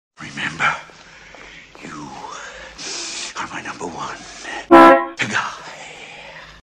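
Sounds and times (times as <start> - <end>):
horn honk: 4.7 - 5.2.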